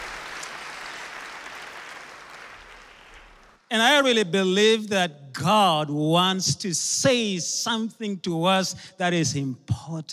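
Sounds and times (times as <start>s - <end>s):
audience hand clapping: 0.0s - 3.6s
speech: 3.7s - 10.1s.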